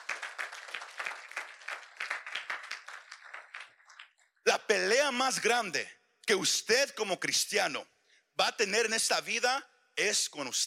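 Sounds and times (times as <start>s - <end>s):
crowd applauding: 0.0s - 4.4s
speech: 4.7s - 10.6s.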